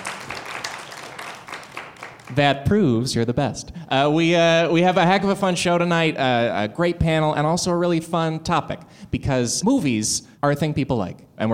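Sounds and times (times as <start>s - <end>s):
audience applause: 0.0s - 2.4s
speech: 2.3s - 11.5s.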